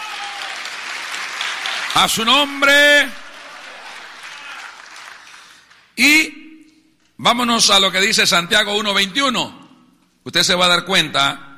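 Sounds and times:
audience applause: 0.0s - 6.0s
speech: 2.0s - 3.2s, 6.0s - 6.4s, 7.2s - 9.6s, 10.2s - 11.5s.

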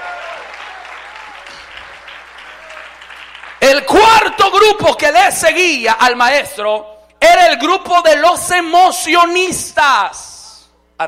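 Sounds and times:
audience applause: 0.0s - 3.6s
speech: 3.7s - 10.2s.

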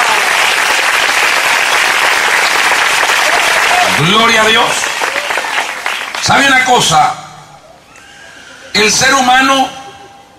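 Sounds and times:
audience applauding: 0.0s - 6.7s
speech: 4.0s - 4.9s, 6.3s - 7.2s, 8.7s - 9.8s.

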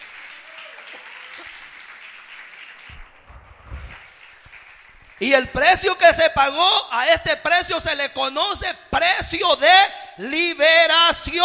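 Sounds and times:
crowd applause: 0.0s - 5.4s
low thumps: 2.9s - 4.2s
speech: 5.2s - 11.4s.

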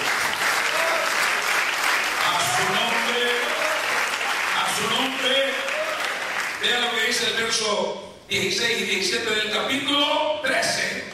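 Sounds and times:
audience applause: 0.0s - 6.6s
speech: 6.6s - 11.1s.

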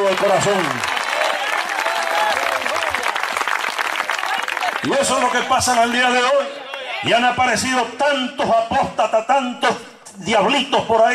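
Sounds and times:
applause: 0.0s - 6.9s
speech: 0.2s - 1.0s, 4.8s - 11.1s.

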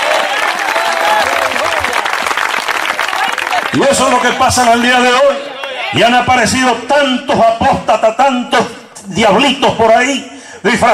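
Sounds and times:
church audience applauding: 0.0s - 6.0s
speech: 3.7s - 10.9s.

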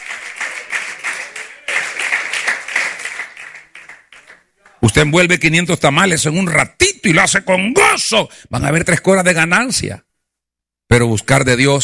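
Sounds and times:
audience applauding: 0.0s - 4.8s
speech: 4.8s - 10.1s, 10.9s - 11.8s.

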